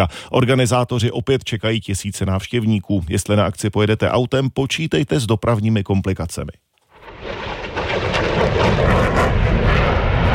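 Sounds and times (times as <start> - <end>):
speech: 0.0 - 6.6
aircraft flying at an air show: 7.0 - 10.3.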